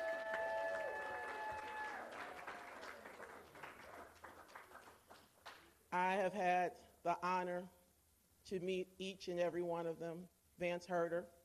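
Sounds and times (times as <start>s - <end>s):
audience applause for scholarship finalists at an event: 0.0s - 5.7s
speech: 5.9s - 7.8s, 8.5s - 11.4s.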